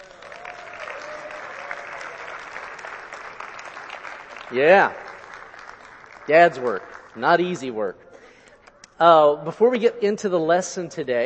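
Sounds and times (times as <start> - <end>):
crowd applauding: 0.0 - 7.9
speech: 4.5 - 5.0, 6.3 - 8.0, 9.0 - 11.2.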